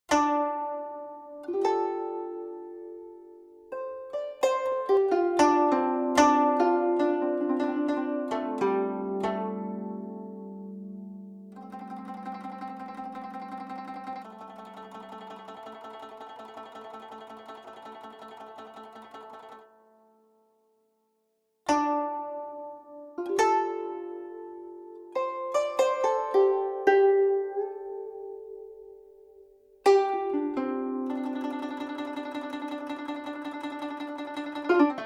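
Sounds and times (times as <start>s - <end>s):
guzheng: 0.1s - 19.8s, 21.7s - 29.0s, 29.8s - 35.0s.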